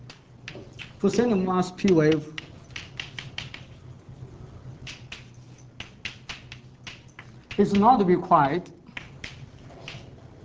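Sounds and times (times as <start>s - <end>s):
writing on a board during a physics lecture: 0.0s - 3.8s, 4.8s - 8.0s, 8.9s - 10.4s
low steady hum: 0.0s - 10.4s
speech: 1.0s - 2.4s, 7.6s - 8.8s.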